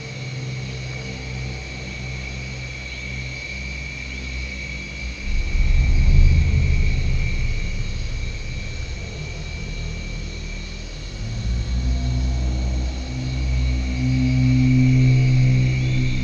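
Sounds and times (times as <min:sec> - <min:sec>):
nest ambience: 0:04.9 - 0:16.2.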